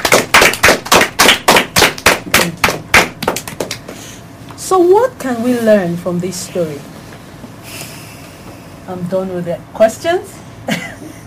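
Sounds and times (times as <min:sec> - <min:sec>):
round of applause: 0:00.0 - 0:03.9
speech: 0:04.7 - 0:07.0, 0:08.9 - 0:10.9.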